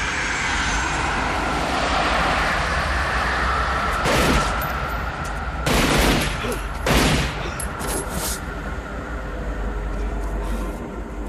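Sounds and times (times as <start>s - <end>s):
steady low rumble: 0.0s - 11.2s
pistol gunfire in a film shootout scene: 5.6s - 7.4s.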